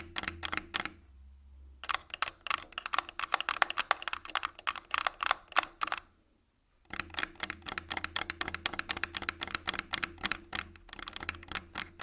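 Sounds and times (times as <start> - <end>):
Tascam full body tapping and scratching: 1.8 - 6.0, 6.9 - 12.0.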